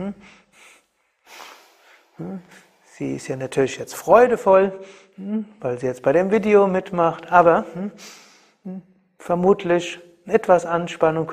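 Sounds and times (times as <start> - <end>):
speech: 0.0 - 0.7, 2.2 - 11.3
irregular anxious breathing: 0.0 - 2.9, 4.8 - 5.5, 7.6 - 8.7.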